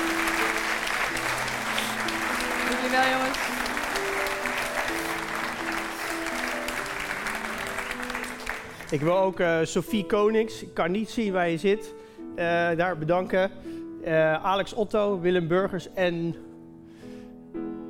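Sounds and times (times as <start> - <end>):
audience applause: 0.0 - 9.4
tonal music: 0.0 - 13.4
speech: 2.9 - 3.6, 8.9 - 16.5.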